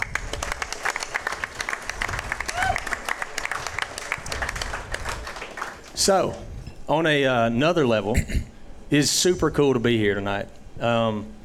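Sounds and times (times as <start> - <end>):
live audience applause: 0.0 - 6.3
scattered voices and whoops: 2.4 - 3.0
speech: 6.0 - 11.4.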